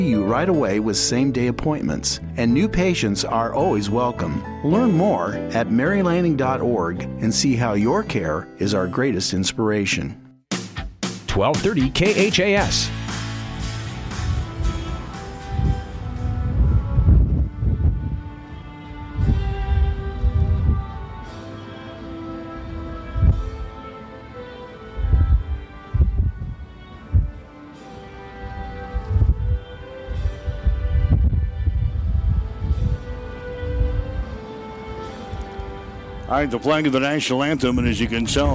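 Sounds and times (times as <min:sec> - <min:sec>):
speech: 0:00.0 - 0:10.3, 0:11.4 - 0:13.0, 0:36.4 - 0:38.5
strong wind at outdoor ballpark: 0:13.5 - 0:38.5.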